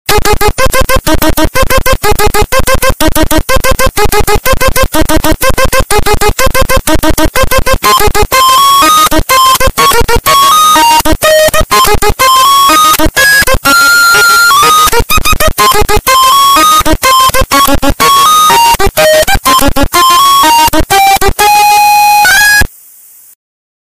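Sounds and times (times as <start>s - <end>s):
distorted loud audio: 0.1s - 22.8s.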